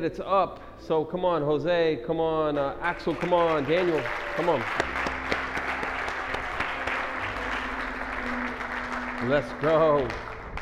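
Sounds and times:
speech: 0.0s - 4.9s, 9.2s - 10.3s
audience applause: 3.0s - 10.6s.

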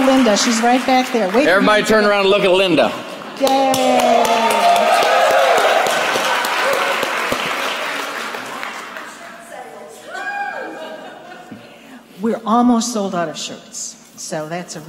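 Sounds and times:
audience applause: 0.0s - 9.5s
speech: 0.1s - 4.6s, 12.2s - 14.8s
laughter: 10.1s - 11.8s.

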